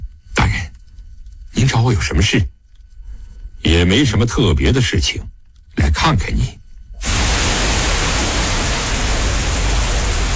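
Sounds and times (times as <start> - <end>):
speech: 1.6 - 2.5, 3.8 - 6.6
rain pattering outside the house: 7.0 - 10.3.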